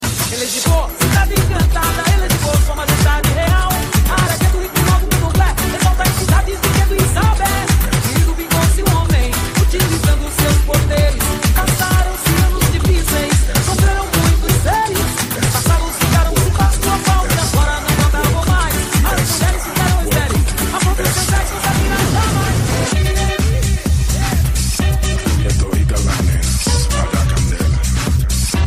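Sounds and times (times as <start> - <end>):
latin dance ringtone: 0.0 - 28.6.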